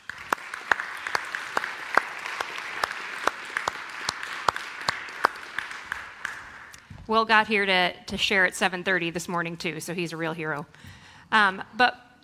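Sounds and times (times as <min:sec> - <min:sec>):
audience applause welcoming a speaker: 0:00.0 - 0:06.8
speech: 0:07.1 - 0:12.0.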